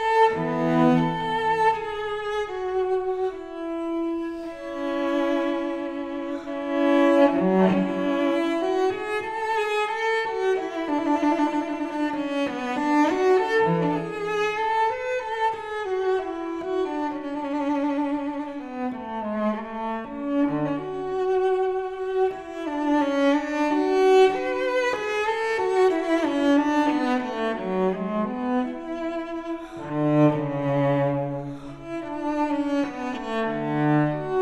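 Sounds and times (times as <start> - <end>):
solo cello suite: 0.0 - 34.3.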